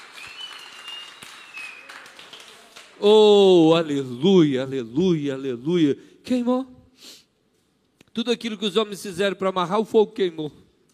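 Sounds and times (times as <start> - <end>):
audience applauding: 0.0 - 3.1
speech: 3.0 - 7.2, 8.2 - 10.6.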